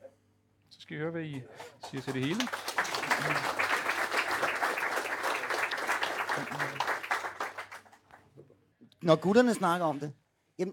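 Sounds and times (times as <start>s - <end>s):
speech: 0.9s - 3.5s, 9.0s - 10.7s
audience clapping: 1.3s - 8.3s.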